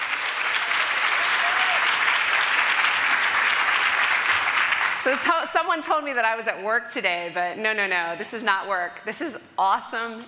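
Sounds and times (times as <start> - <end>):
audience applause: 0.0 - 5.3
speech: 5.0 - 10.2.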